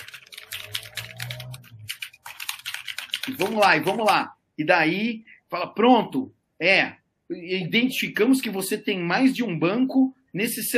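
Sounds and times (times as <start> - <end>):
computer keyboard typing: 0.0 - 4.3
speech: 3.3 - 10.7.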